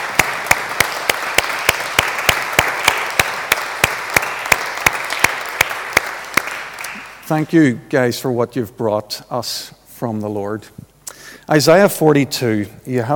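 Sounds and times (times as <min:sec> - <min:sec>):
audience round of applause: 0:00.0 - 0:07.2
speech: 0:07.3 - 0:10.9, 0:11.5 - 0:13.1.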